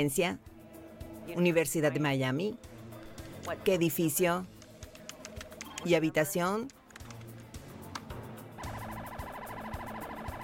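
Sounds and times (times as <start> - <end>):
speech: 0.0 - 0.5, 1.3 - 2.7, 3.4 - 4.6, 5.8 - 6.8
police car and ambulance sirens: 8.6 - 10.4.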